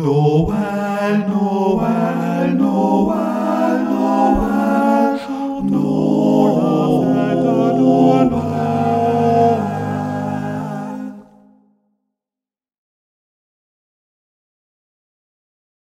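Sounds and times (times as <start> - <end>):
tenor singing Christmas carol: 0.0 - 11.6.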